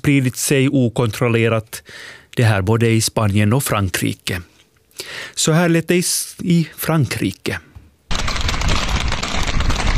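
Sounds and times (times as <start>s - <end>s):
speech: 0.0s - 7.7s
many horses galloping through town in panic: 8.1s - 9.9s.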